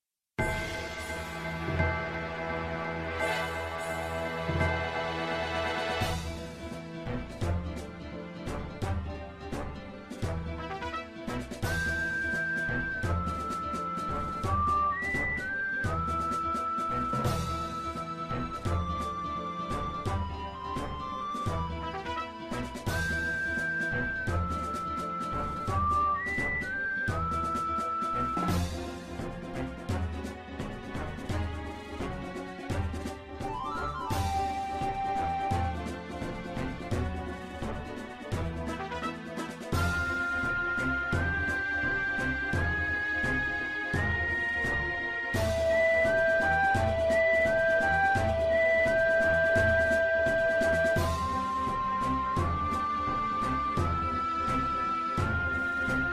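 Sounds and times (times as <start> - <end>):
battle ambience music: 0.4 - 56.1.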